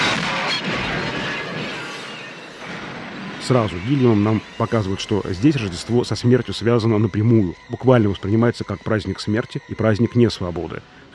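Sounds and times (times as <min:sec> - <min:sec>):
explosion in a film scene: 0:00.0 - 0:04.0
speech: 0:03.5 - 0:11.0.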